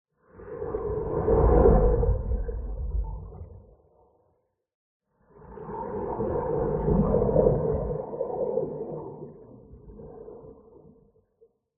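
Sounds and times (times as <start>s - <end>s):
swimming underwater: 0.4s - 3.9s, 5.6s - 11.1s.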